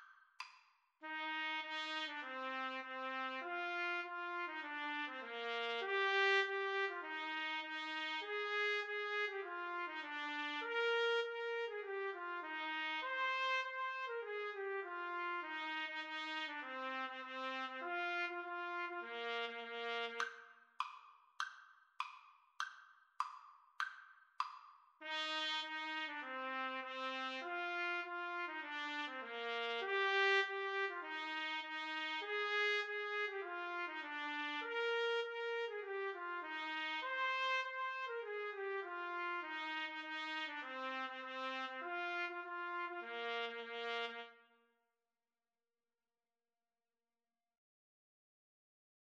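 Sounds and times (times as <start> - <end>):
trumpet and trombone duet: 1.0 - 20.4, 25.0 - 44.4.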